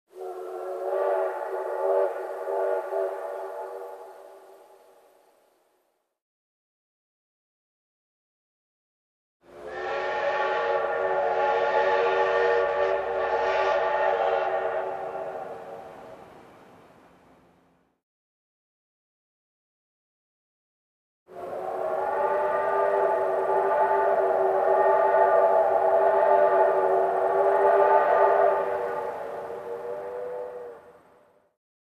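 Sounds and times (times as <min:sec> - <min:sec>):
trains: 0:00.1 - 0:06.0, 0:09.4 - 0:18.0, 0:21.3 - 0:31.6.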